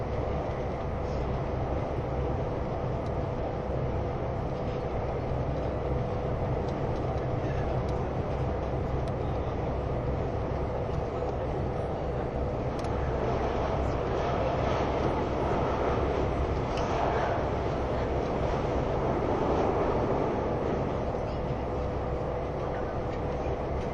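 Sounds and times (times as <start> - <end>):
ICN tilting train RABDe 500 running on the Gotthard line: 0.0 - 23.9
faint steady whine of ICN tilting train RABDe 500: 0.0 - 23.9.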